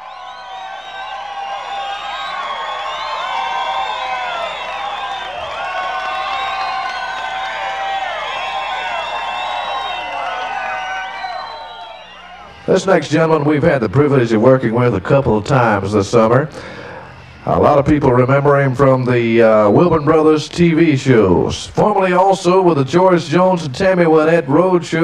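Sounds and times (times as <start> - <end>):
large crowd cheering and whooping with clapping: 0.0 - 12.8
speech: 12.7 - 16.8, 17.4 - 25.0.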